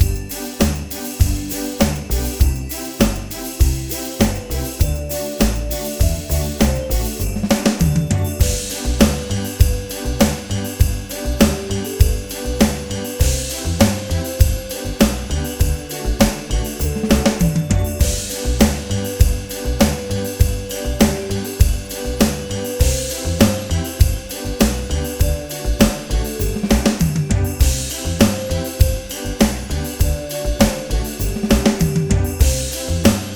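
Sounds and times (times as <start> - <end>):
Christmas tune at 100 bpm: 0.0 - 33.3.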